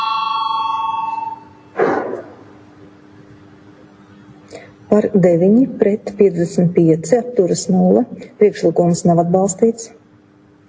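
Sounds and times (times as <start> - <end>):
parliamentary voting bell ringing: 0.0 - 1.5
speech: 4.9 - 10.0.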